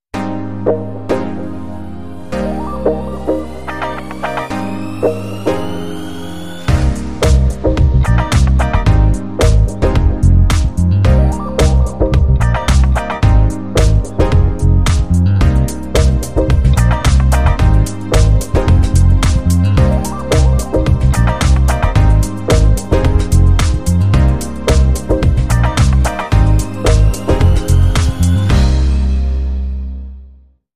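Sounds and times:
funky music: 0:00.2 - 0:30.1.

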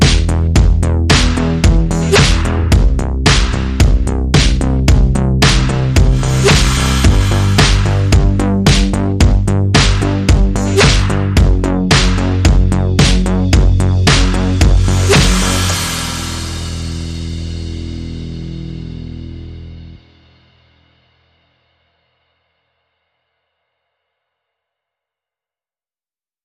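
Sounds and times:
bass: 0:00.0 - 0:22.8
beats: 0:05.4 - 0:11.2, 0:13.0 - 0:17.7.

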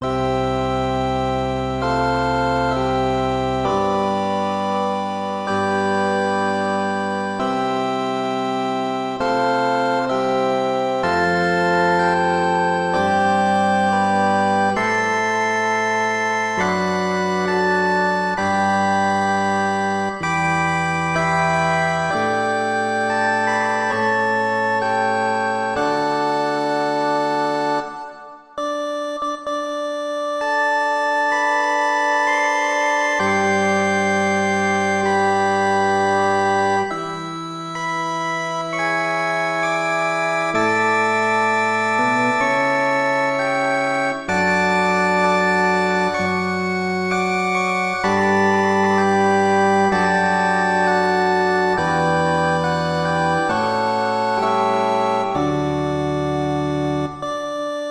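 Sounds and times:
church organ background music: 0:00.0 - 0:57.8.

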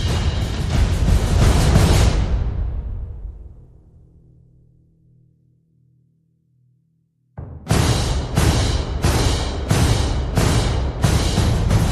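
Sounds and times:
percussion: 0:00.0 - 0:03.3, 0:07.4 - 0:11.9.

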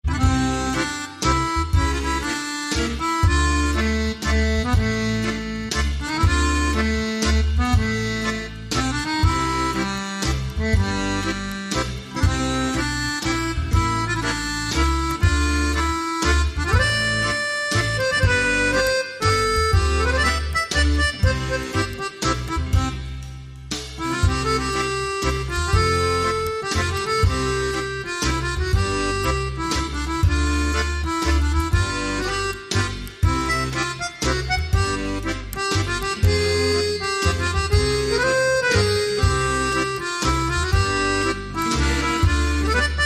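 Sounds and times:
waltz music: 0:00.0 - 0:43.0.

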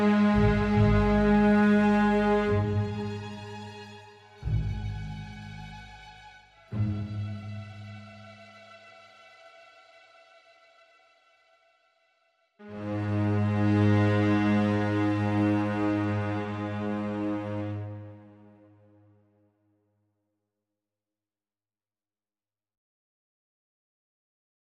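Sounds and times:
strings: 0:00.0 - 0:12.0, 0:12.6 - 0:18.9.

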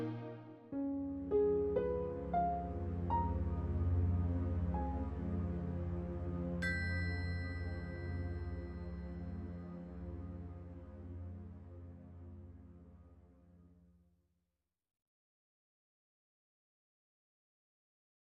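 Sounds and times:
ghostly pianist playing in a haunted manor house: 0:00.7 - 0:10.1.

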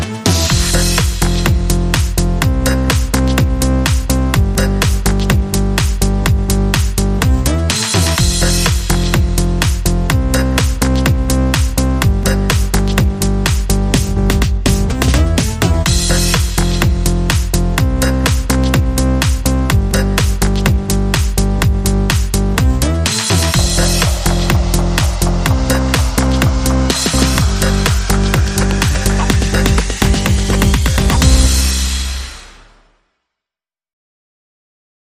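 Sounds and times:
drums and bass: 0:00.0 - 0:32.7.

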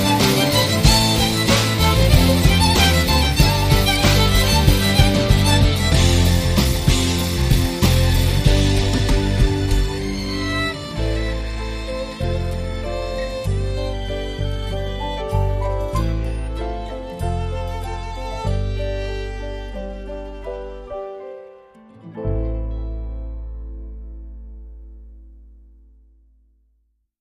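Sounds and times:
pop rock music: 0:00.0 - 0:20.8.

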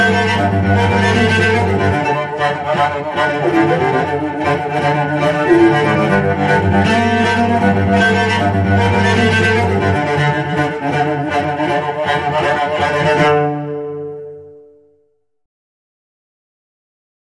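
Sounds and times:
cello music of danger and excitement: 0:00.0 - 0:15.0.

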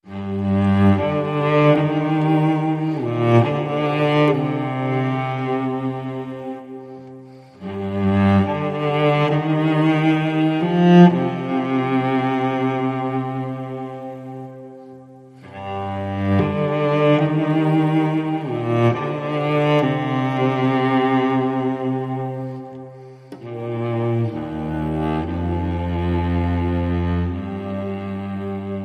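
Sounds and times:
cello: 0:00.0 - 0:28.8.

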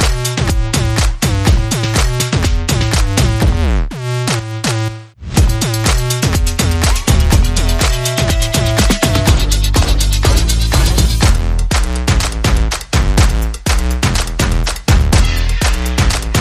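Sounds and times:
bass: 0:00.0 - 0:16.3
percussion: 0:00.0 - 0:16.3
sound effects: 0:03.9 - 0:11.5.

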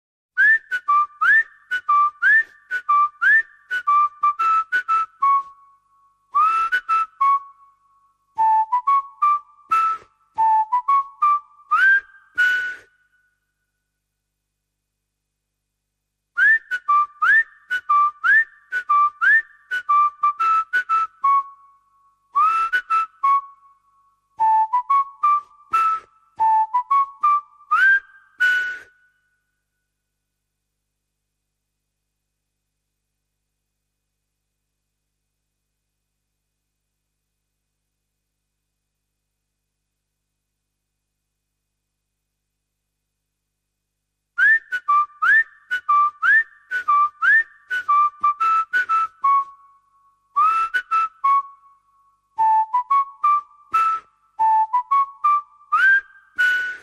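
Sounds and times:
whistle: 0:00.4 - 0:13.4, 0:16.4 - 0:29.8, 0:44.4 - 0:56.8.

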